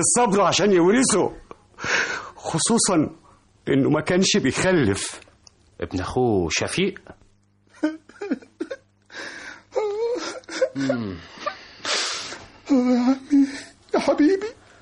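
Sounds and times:
speech: 0.0s - 7.2s, 10.8s - 11.3s, 14.0s - 14.6s
man crying over his dead uncle: 7.7s - 13.9s.

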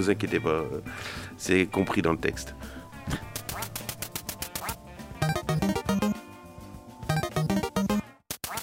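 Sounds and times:
speech: 0.0s - 3.3s
short bouncy show jingle: 5.2s - 6.2s, 7.1s - 8.1s.

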